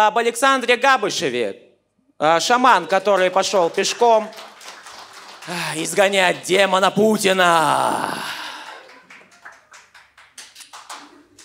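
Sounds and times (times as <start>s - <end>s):
speech: 0.0s - 1.6s, 2.2s - 4.5s, 5.5s - 8.4s
audience applause: 2.9s - 11.4s.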